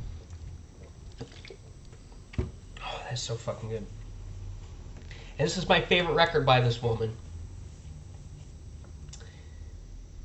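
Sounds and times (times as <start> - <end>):
person drinking Pepsi Mango soda: 0.0 - 1.9
speech: 3.1 - 4.0, 5.4 - 7.2.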